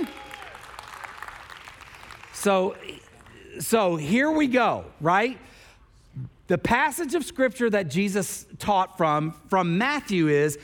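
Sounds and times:
applause: 0.0s - 3.4s
speech: 2.4s - 5.6s, 6.5s - 10.6s.

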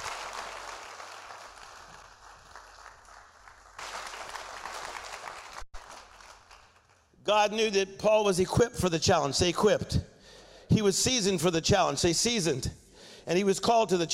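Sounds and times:
audience clapping hands: 0.0s - 7.2s
speech: 7.3s - 10.1s, 10.7s - 14.1s.

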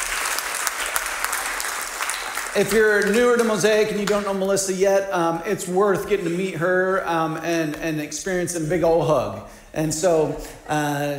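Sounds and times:
audience applause: 0.0s - 4.4s
speech: 2.6s - 11.1s.

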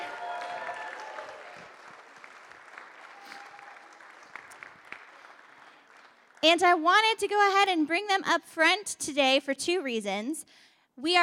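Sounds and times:
cheers and whoops: 0.0s - 1.8s, 3.0s - 4.2s
audience applause: 0.0s - 6.4s
speech: 6.4s - 11.2s.

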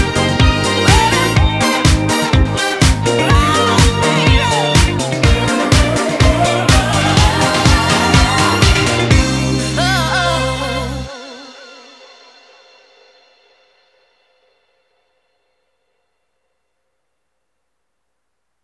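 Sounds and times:
disco tune: 0.0s - 12.6s.

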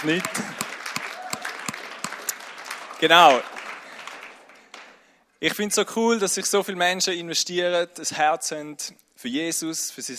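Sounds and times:
speech: 0.0s - 0.5s, 3.0s - 3.5s, 5.4s - 10.1s
audience applause: 0.0s - 5.0s.

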